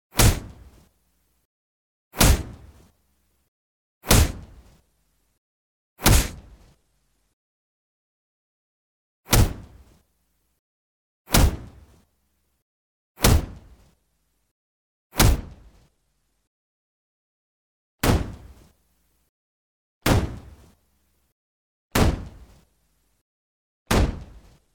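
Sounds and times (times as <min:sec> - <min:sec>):
heavy intense punches or kicks: 0:00.1 - 0:00.8, 0:02.2 - 0:02.8, 0:04.0 - 0:04.7, 0:06.0 - 0:06.6, 0:09.3 - 0:10.0, 0:11.3 - 0:11.8, 0:13.2 - 0:13.8, 0:15.2 - 0:15.8, 0:20.0 - 0:20.6, 0:22.0 - 0:22.5, 0:23.9 - 0:24.6.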